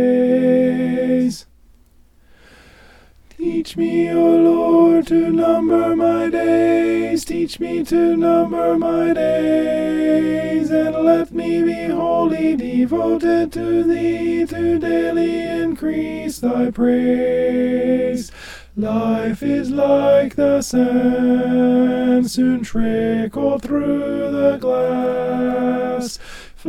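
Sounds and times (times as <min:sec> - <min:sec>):
alto voice singing a hymn: 0:00.0 - 0:01.5, 0:03.3 - 0:26.6.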